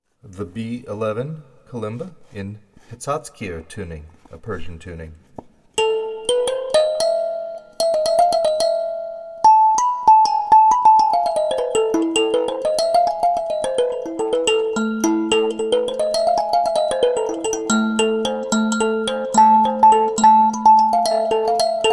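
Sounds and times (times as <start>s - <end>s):
kalimba: 5.8s - 21.9s.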